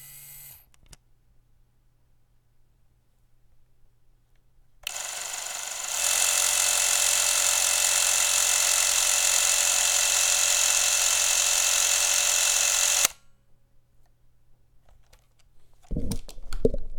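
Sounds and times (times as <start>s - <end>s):
Super8 camera speed and zoom: 0.0s - 0.6s, 4.8s - 13.2s.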